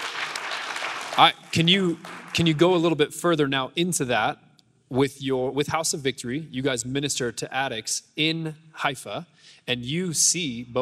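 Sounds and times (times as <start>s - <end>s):
audience clapping: 0.0s - 2.9s
speech: 1.2s - 10.8s.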